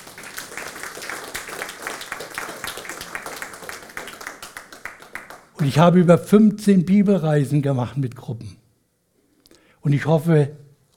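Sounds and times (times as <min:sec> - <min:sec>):
applause: 0:00.0 - 0:05.8
speech: 0:05.6 - 0:08.6, 0:09.8 - 0:10.6.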